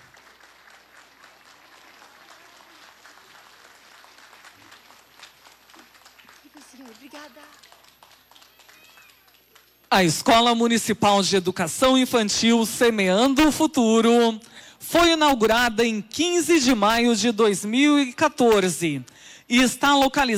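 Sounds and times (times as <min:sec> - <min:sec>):
audience applauding: 0:00.0 - 0:10.1
speech: 0:06.9 - 0:07.7, 0:09.9 - 0:20.3.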